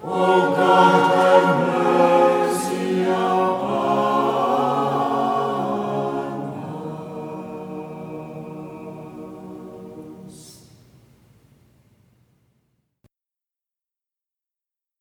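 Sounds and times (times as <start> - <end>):
choir chanting a Byzantine hymn in tone two: 0.0 - 10.7.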